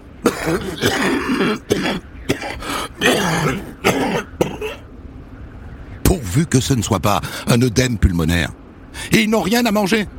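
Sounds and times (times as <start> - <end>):
man coughing: 0.2 - 4.8
speech: 0.4 - 4.8, 6.1 - 10.1.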